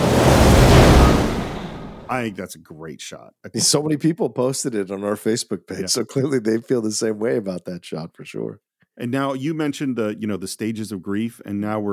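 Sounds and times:
thunder rumbling: 0.0s - 2.3s
speech: 2.1s - 11.9s.

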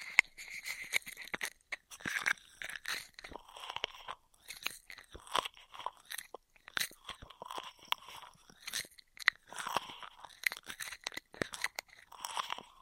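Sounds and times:
intense straw trigger sounds: 0.0s - 12.8s.

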